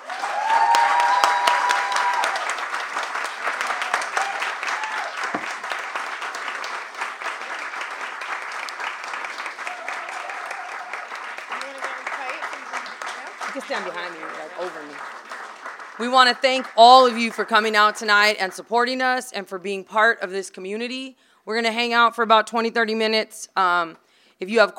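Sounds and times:
audience applause: 0.0 - 18.4
speech: 13.7 - 15.2, 16.0 - 24.7.

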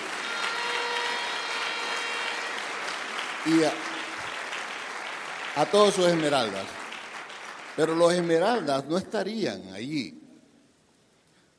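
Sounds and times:
audience applause: 0.0 - 8.8
speech: 3.4 - 3.9, 5.6 - 6.8, 7.8 - 10.2.

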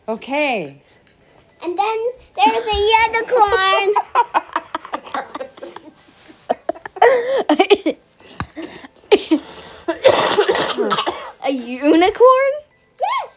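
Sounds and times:
speech: 0.1 - 1.0, 1.6 - 4.4, 7.1 - 8.0, 10.8 - 12.6
laughter: 2.6 - 7.4
person coughing: 7.0 - 8.0, 9.1 - 11.4.

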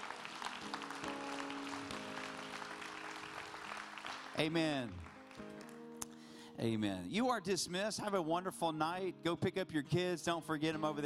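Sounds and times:
audience clapping hands: 0.0 - 6.2
speech: 4.4 - 5.5, 6.6 - 11.0.

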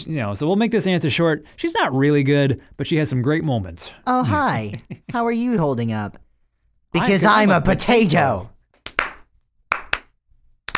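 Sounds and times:
speech: 0.0 - 6.2, 6.9 - 9.0
slow clap from the video game Portal 2: 8.8 - 10.1.

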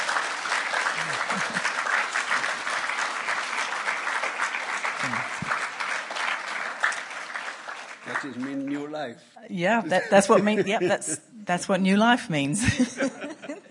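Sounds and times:
audience applause: 0.0 - 9.0
laughter: 1.0 - 1.9, 9.8 - 11.3, 12.6 - 13.6
speech: 8.2 - 13.3.

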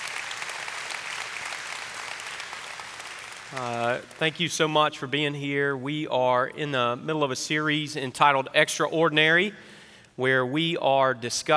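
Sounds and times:
audience clapping: 0.0 - 4.5
speech: 3.5 - 11.5.

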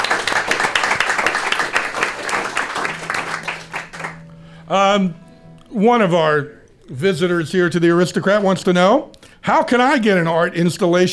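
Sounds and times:
audience applause: 0.0 - 4.2
speech: 4.7 - 11.1.

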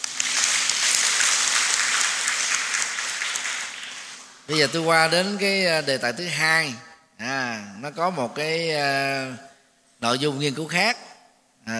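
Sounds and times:
crowd applause: 0.0 - 5.0
speech: 4.5 - 11.0.

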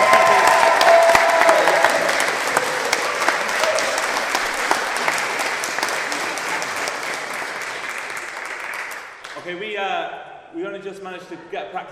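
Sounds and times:
audience at a live school event applauding guests coming on stage: 0.0 - 9.4
speech: 10.8 - 11.9.

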